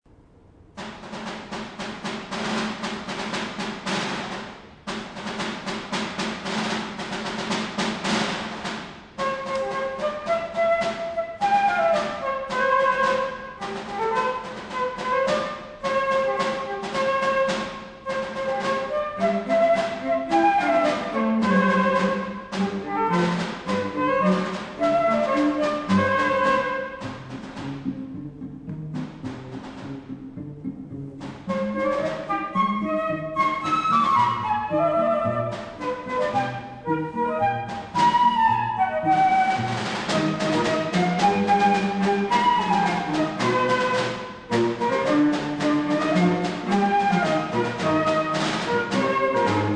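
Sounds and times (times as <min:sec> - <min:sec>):
snare drum: 0:00.8 - 0:28.2, 0:28.8 - 0:30.3, 0:31.2 - 0:49.7
march with cello, flute and snare drum: 0:00.8 - 0:49.7
flute: 0:09.2 - 0:28.0, 0:31.2 - 0:49.7
cello: 0:09.2 - 0:49.7.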